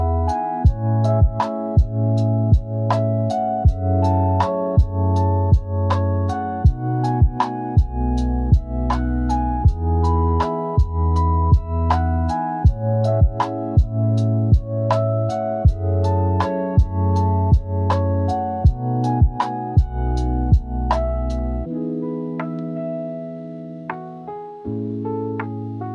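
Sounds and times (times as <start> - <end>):
chill lofi music: 0.0 - 25.9.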